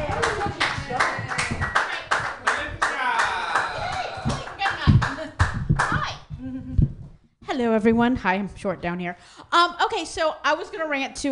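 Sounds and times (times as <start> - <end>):
audience clapping at a comedy workshop: 0.0 - 6.2
speech: 7.7 - 11.3.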